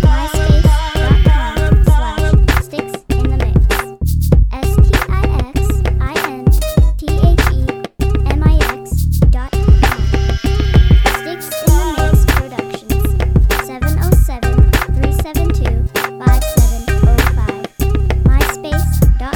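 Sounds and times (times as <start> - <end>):
club music: 0.0 - 19.3.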